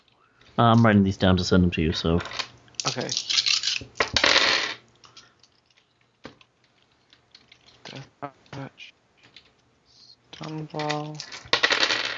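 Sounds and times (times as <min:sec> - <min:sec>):
speech: 0:00.6 - 0:04.0, 0:10.7 - 0:11.3
dice rolling: 0:02.2 - 0:07.9, 0:10.4 - 0:12.1.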